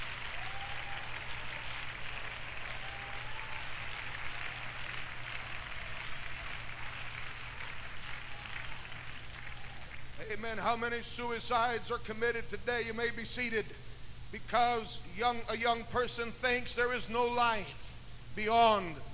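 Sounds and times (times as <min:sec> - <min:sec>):
audience hand clap of praise: 0:00.0 - 0:10.4
speech: 0:10.3 - 0:17.8, 0:18.4 - 0:19.1.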